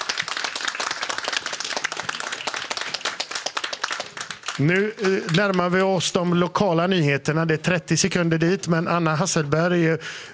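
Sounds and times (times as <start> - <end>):
audience applause: 0.0 - 6.1
speech: 4.6 - 10.3.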